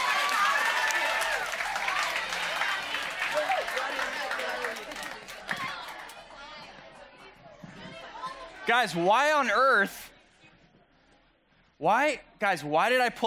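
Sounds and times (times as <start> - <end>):
whoops and cheers: 0.0 - 2.1
crowd applause: 0.0 - 6.1
speech: 8.7 - 10.1, 11.8 - 13.2.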